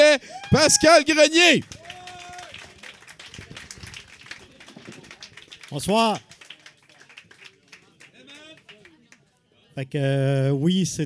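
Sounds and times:
speech: 0.2s - 1.8s, 5.7s - 6.3s, 9.8s - 11.0s
audience applause: 1.5s - 9.1s.

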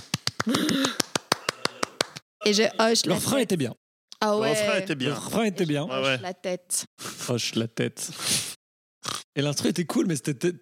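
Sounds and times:
hand clapping: 0.0s - 2.2s
speech: 0.4s - 1.0s, 2.5s - 8.5s, 9.4s - 10.5s.

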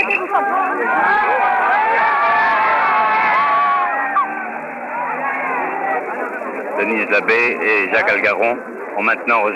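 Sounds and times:
crowd booing: 0.0s - 6.8s
speech: 0.4s - 1.1s, 6.8s - 9.5s.

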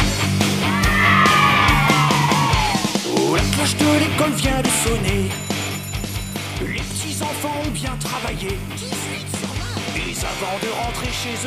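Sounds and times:
grindcore music with screamed vocals: 0.0s - 5.5s, 6.4s - 11.4s
speech: 10.2s - 11.4s.

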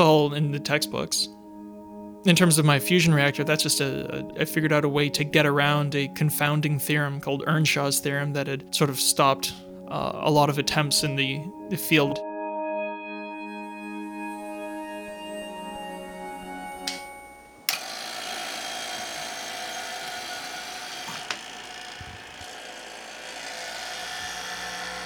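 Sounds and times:
speech: 0.0s - 1.4s, 2.2s - 12.3s
vacuum pump running: 16.9s - 25.0s.

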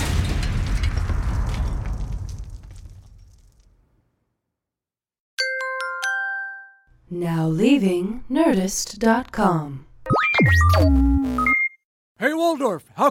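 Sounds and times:
explosion sound effect: 0.0s - 4.1s
speech: 7.1s - 11.6s, 12.2s - 13.0s.

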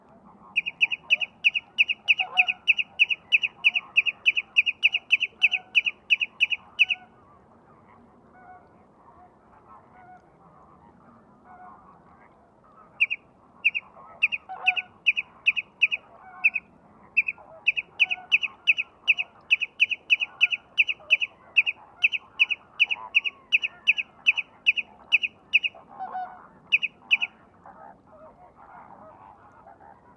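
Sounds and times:
greater flamingos babbling and honking in Camargue: 0.6s - 7.0s, 13.0s - 16.6s, 17.2s - 27.3s.

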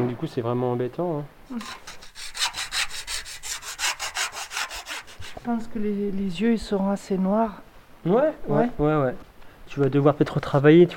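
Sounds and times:
speech: 0.0s - 2.2s, 5.4s - 10.9s
hand saw cutting through wood: 1.5s - 5.5s.

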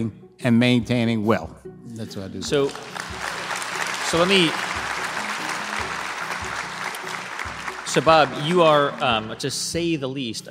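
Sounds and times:
speech: 0.0s - 3.1s, 4.1s - 4.7s, 7.9s - 10.4s
audience cheering and applauding: 2.6s - 9.4s.

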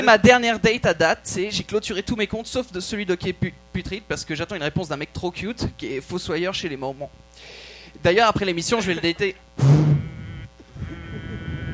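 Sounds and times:
speech: 0.0s - 9.8s
person imitating a vibrating phone with a lip trill: 9.6s - 11.7s.

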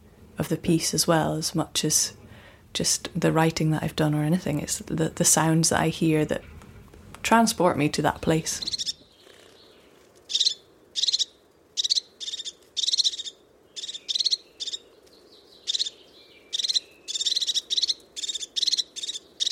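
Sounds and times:
low steady outdoor rumble: 0.0s - 12.2s
speech: 0.4s - 2.2s, 2.8s - 6.6s, 7.2s - 8.8s
crested tit trilling calls: 8.5s - 9.7s, 10.3s - 14.9s, 15.5s - 19.5s.

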